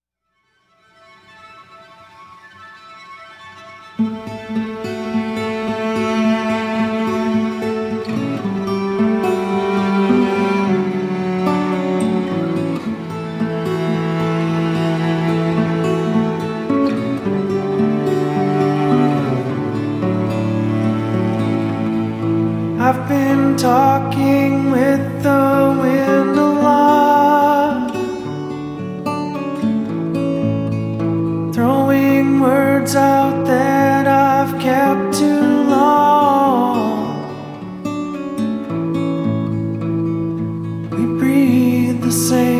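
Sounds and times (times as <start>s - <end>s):
acoustic music: 0.4s - 42.5s.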